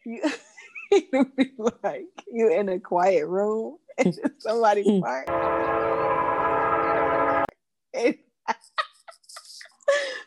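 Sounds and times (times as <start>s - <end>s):
speech: 1.0s - 6.0s, 7.9s - 8.7s
train horn: 5.3s - 7.5s.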